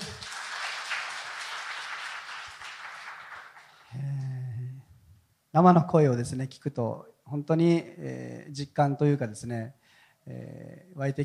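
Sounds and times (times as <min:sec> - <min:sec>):
big round of audience applause: 0:00.0 - 0:03.8
speech: 0:05.6 - 0:11.2.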